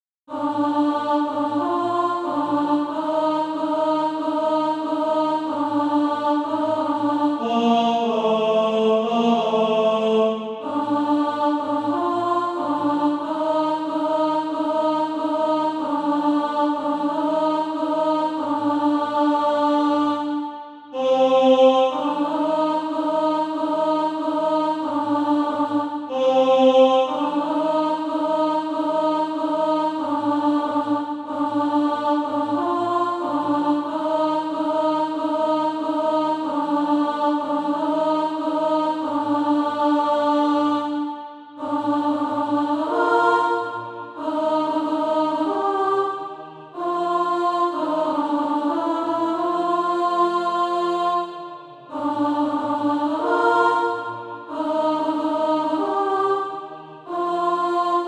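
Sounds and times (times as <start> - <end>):
alto voice singing SATB practice music: 0.3 - 58.0.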